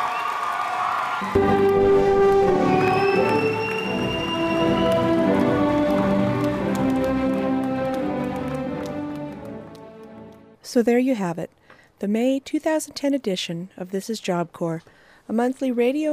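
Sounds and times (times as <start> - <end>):
audience applauding graduates: 0.0 - 10.4
speech: 1.2 - 1.6, 10.8 - 16.1.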